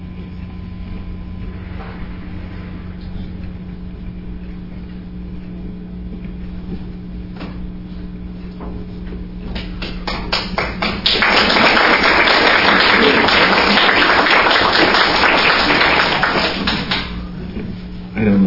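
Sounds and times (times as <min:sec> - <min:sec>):
audience applause: 0:10.0 - 0:17.2.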